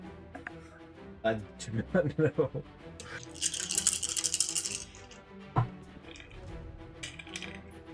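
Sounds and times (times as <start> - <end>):
speech: 1.2 - 3.6
dice clattering across a hard surface: 3.0 - 5.2, 6.0 - 7.7.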